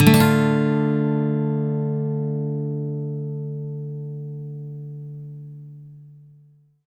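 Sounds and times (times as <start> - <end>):
acoustic guitar minor sweep: 0.0 - 6.6.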